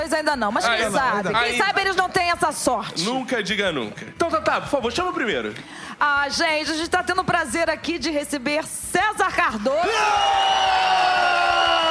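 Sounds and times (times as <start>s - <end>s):
speech: 0.2s - 11.0s
crowd applause with cheering and whoops: 9.8s - 11.9s.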